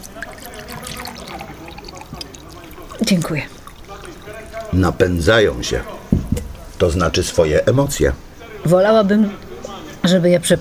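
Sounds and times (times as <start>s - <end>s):
tea being poured into a cup: 0.0s - 6.2s
speech: 3.1s - 3.6s, 4.7s - 6.0s, 6.8s - 9.4s, 10.0s - 10.6s.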